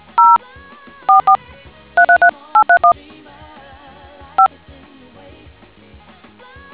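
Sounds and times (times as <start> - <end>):
DTMF tones: 0.0 - 0.4, 1.1 - 1.4, 2.0 - 2.9.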